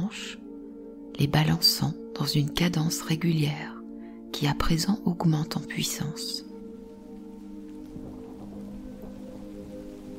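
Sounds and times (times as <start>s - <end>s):
low constant hum: 0.0s - 10.1s
speech: 0.1s - 0.4s, 1.2s - 6.5s
light rain pattering: 3.6s - 10.1s.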